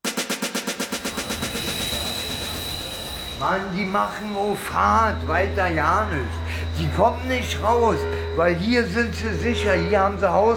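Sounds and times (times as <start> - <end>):
train wheels clattering at a railway station: 0.7 - 5.0
train rumbling with a thin high-pitched whine: 0.8 - 8.9
speech: 3.4 - 10.5.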